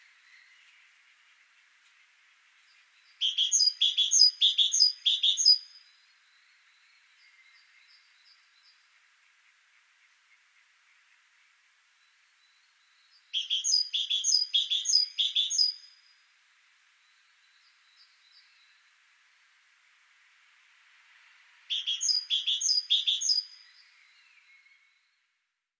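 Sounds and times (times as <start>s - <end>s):
great tit calls: 3.1s - 5.8s, 13.2s - 16.0s, 21.7s - 24.0s.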